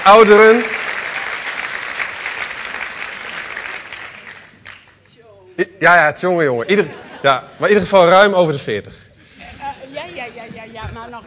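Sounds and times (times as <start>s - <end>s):
speech: 0.0s - 0.8s, 5.6s - 9.0s
warm audience applause: 0.0s - 5.0s
laughter: 6.6s - 8.2s.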